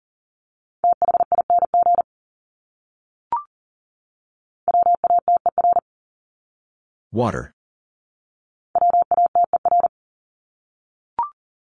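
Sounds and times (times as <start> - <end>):
Morse code beeps at 40 words per minute: 0.9 - 2.0, 4.7 - 5.8, 8.8 - 9.9
speech: 7.1 - 7.6.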